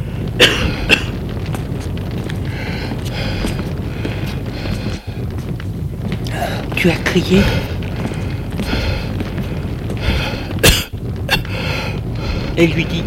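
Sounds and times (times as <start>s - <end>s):
woman breathing heavily: 0.0s - 1.2s, 2.4s - 10.7s, 11.3s - 12.6s
speech: 6.8s - 7.7s, 12.6s - 13.0s.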